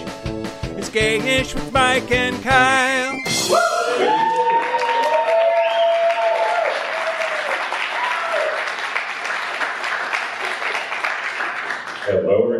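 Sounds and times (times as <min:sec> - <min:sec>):
speech: 0:00.9 - 0:04.3
audience clapping and cheering: 0:03.8 - 0:12.3.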